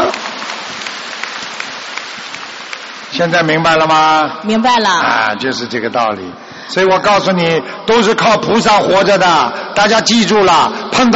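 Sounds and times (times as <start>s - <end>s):
audience applause: 0.0s - 3.9s
speech: 3.2s - 11.1s.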